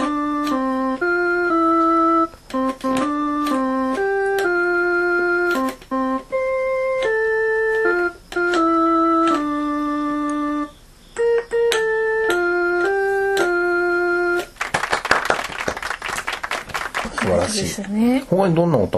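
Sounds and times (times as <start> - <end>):
Casio MT-20 keyboard playing on its pipe organ voice: 0.0 - 14.6
clapping: 14.4 - 17.6
speech: 17.8 - 18.9.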